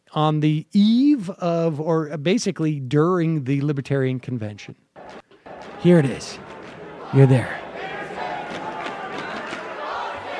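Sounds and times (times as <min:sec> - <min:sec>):
speech: 0:00.2 - 0:04.8, 0:05.8 - 0:06.5, 0:07.1 - 0:07.6
crowd cheering at a debate: 0:05.0 - 0:10.3.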